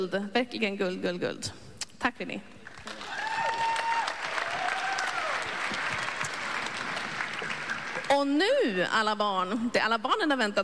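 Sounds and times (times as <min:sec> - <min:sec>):
speech: 0:00.0 - 0:02.6, 0:08.1 - 0:10.6
church congregation applauding during a service: 0:02.6 - 0:08.2.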